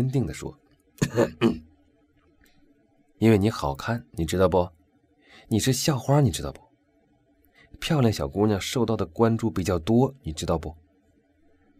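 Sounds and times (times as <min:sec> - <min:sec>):
speech: 0:00.0 - 0:01.7, 0:03.2 - 0:04.8, 0:05.4 - 0:06.7, 0:07.8 - 0:10.8
throat clearing: 0:01.0 - 0:01.7.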